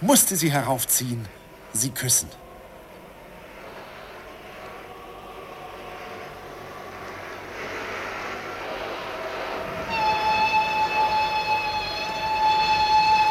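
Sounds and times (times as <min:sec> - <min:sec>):
speech: 0:00.0 - 0:02.5
rail rumble: 0:00.0 - 0:13.2
locomotive multi-tone horn sounding impatiently: 0:09.6 - 0:13.2.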